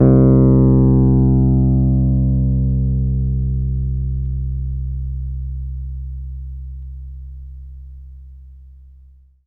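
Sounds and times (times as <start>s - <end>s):
electric piano C1 note: 0.0s - 6.9s.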